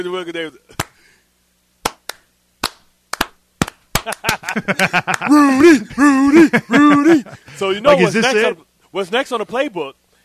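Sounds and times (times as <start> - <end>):
speech: 0.0 - 0.8, 4.0 - 10.0
slow clap: 0.8 - 1.0, 1.8 - 5.7
laughter: 4.0 - 8.4
person shouting: 5.2 - 8.5.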